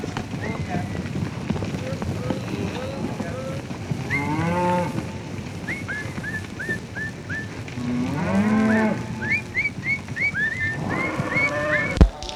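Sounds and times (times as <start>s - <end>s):
cattle mooing: 0.0s - 12.0s
laughter: 0.0s - 12.3s
person whistling short rising notes: 5.6s - 12.0s.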